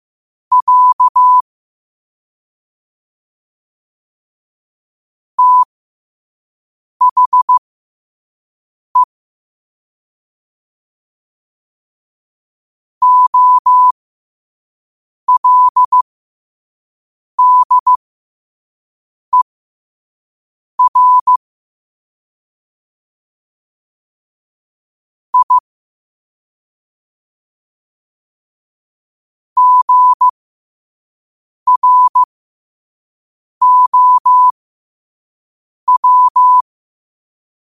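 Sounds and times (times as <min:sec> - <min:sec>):
morse code at 5 wpm: 0:00.5 - 0:01.4, 0:05.4 - 0:05.7, 0:07.0 - 0:07.6, 0:13.0 - 0:13.9, 0:15.3 - 0:16.0, 0:17.4 - 0:18.0, 0:20.8 - 0:21.4, 0:25.4 - 0:25.6, 0:29.6 - 0:30.3, 0:31.7 - 0:32.3, 0:33.6 - 0:34.5, 0:35.9 - 0:36.6.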